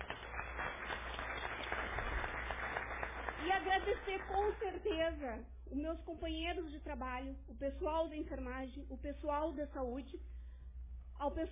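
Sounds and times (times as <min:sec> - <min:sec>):
crowd applause: 0:00.0 - 0:04.6
speech: 0:03.6 - 0:10.3, 0:11.2 - 0:11.5.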